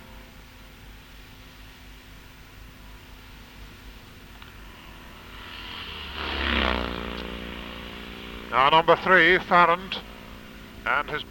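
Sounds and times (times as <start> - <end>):
Vincent motorcycle sidecar outfit engine roaring past in a sidecar race: 3.4 - 11.2
speech: 8.5 - 10.1, 10.8 - 11.2.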